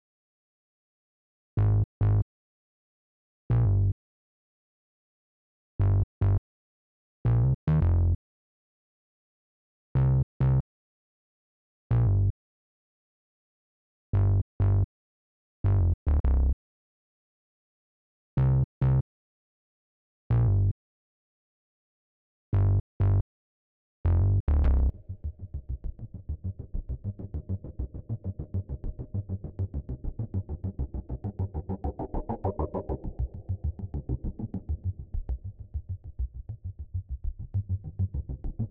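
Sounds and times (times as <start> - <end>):
bass: 1.6 - 2.3, 3.5 - 4.0, 5.8 - 6.4, 7.2 - 8.2, 10.0 - 10.7, 11.9 - 12.4, 14.1 - 14.9, 15.6 - 16.6, 18.4 - 19.1, 20.3 - 20.8, 22.5 - 23.3, 24.0 - 38.7.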